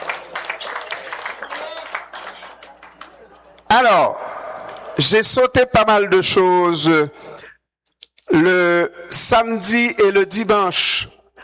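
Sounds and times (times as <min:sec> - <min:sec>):
audience applause: 0:00.0 - 0:03.6
speech: 0:03.7 - 0:04.2, 0:05.0 - 0:07.3, 0:08.3 - 0:11.2.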